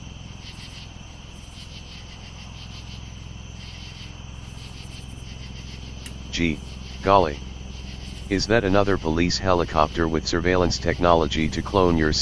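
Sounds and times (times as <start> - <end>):
constant low hum: 0.0 - 12.2
crickets and nighttime insects chirping: 0.0 - 12.2
speech: 6.4 - 7.5, 8.3 - 12.2.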